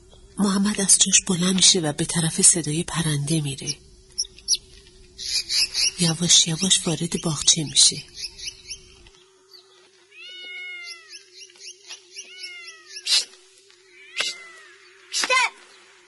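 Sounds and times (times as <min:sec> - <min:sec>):
faint steady hum: 0:00.0 - 0:16.0
speech: 0:00.4 - 0:03.9, 0:06.0 - 0:08.2
cat meowing: 0:10.1 - 0:11.2, 0:12.2 - 0:13.0, 0:14.0 - 0:14.7
cat hissing: 0:12.4 - 0:13.4, 0:14.0 - 0:15.3.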